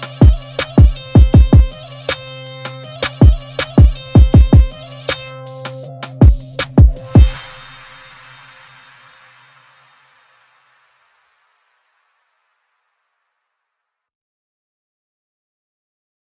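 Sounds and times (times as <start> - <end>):
beats: 0.0 - 7.8.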